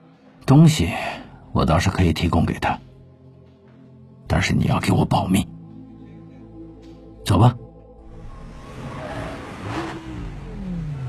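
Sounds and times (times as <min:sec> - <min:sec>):
speech: 0:00.5 - 0:02.9, 0:04.3 - 0:05.6, 0:07.3 - 0:07.6
broadband road rush: 0:08.0 - 0:11.0
car engine whir while driving: 0:08.0 - 0:11.0
rising tonal sweep: 0:08.0 - 0:11.0.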